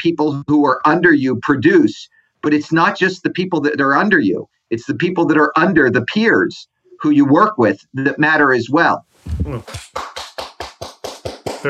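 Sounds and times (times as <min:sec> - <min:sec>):
speech: 0:00.0 - 0:10.1
hand clapping applause: 0:09.3 - 0:11.6.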